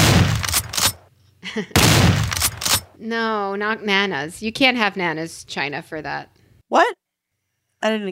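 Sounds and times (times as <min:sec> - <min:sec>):
shotgun blasts at skeet shooting: 0:00.0 - 0:01.0, 0:01.8 - 0:02.9
speech: 0:01.6 - 0:02.3, 0:03.0 - 0:07.0, 0:07.8 - 0:08.1.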